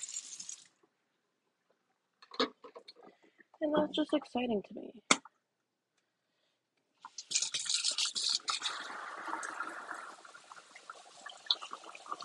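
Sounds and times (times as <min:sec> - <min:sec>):
running water in a kitchen sink: 0:00.0 - 0:00.7, 0:07.1 - 0:12.2
speech: 0:03.6 - 0:05.2.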